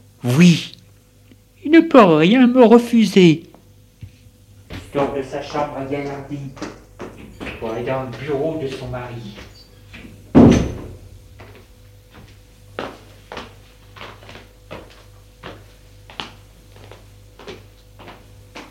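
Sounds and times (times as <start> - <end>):
speech: 0.2 - 0.8, 1.7 - 3.5, 4.9 - 6.8, 7.6 - 9.5
knocking on a door: 10.3 - 11.0.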